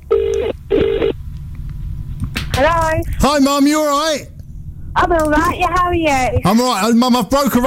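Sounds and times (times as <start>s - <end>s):
telephone ringing tone on a call: 0.0s - 1.1s
low steady telephone line hum: 0.0s - 6.6s
speech: 2.6s - 4.3s, 5.0s - 7.6s.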